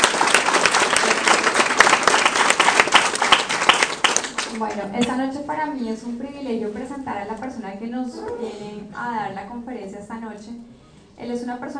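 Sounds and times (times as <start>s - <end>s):
audience applause: 0.0s - 4.6s
speech: 4.6s - 11.7s.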